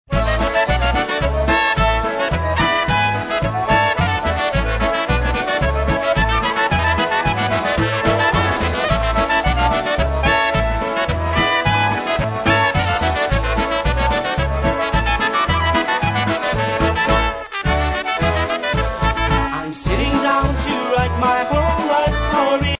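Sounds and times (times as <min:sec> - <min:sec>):
polka music: 0:00.1 - 0:22.7.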